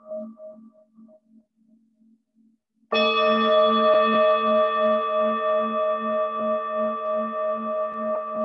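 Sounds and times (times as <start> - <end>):
meditation bell ringing: 3.0 - 8.3.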